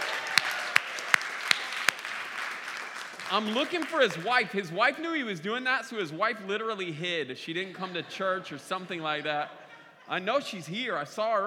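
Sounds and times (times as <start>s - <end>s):
sharp loud claps: 0.0s - 4.4s
audience applause: 0.0s - 4.7s
laughter: 3.3s - 11.0s
speech: 3.3s - 11.4s.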